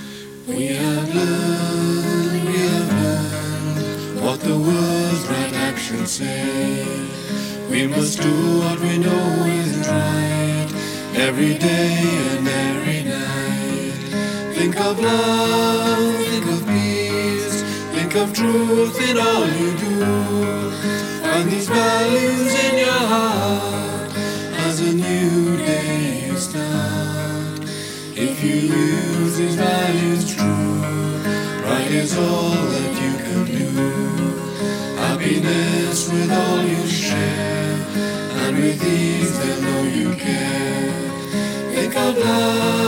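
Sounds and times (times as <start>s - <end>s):
song: 0.4s - 42.8s.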